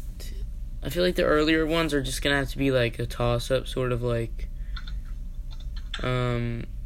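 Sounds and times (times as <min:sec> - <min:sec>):
speech: 0:00.2 - 0:04.5, 0:06.0 - 0:06.8
typing on a computer keyboard: 0:04.8 - 0:06.1.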